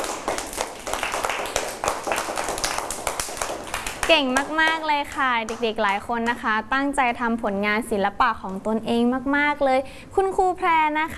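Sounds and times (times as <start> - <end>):
group of children clapping hands: 0.0 - 6.4
speech: 4.1 - 11.1.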